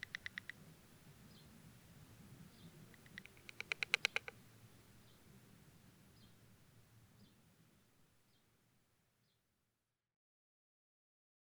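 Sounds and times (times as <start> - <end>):
deathwatch beetle: 0.0 - 0.6, 3.0 - 4.3.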